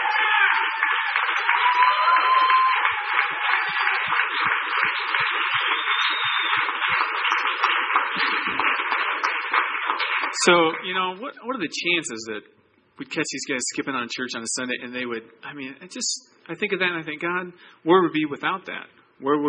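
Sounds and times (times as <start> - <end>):
faint cheering: 0.0 - 7.4
audience applause: 0.0 - 11.2
speech: 0.7 - 8.6, 10.4 - 19.4.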